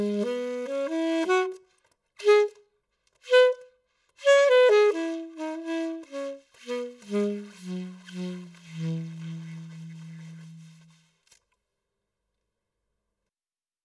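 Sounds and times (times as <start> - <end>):
residual saxophone recording: 0.0 - 2.6, 3.2 - 11.1.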